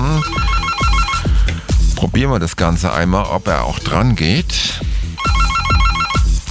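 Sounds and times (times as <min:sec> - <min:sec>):
telephone ringing: 0:00.0 - 0:01.3, 0:05.2 - 0:06.4
speech: 0:02.0 - 0:04.9.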